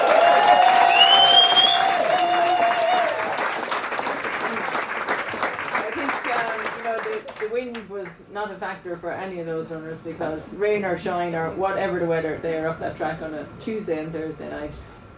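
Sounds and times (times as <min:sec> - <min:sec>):
crowd applauding: 0:00.0 - 0:07.5
whistles: 0:00.8 - 0:02.6
speech: 0:08.4 - 0:15.0.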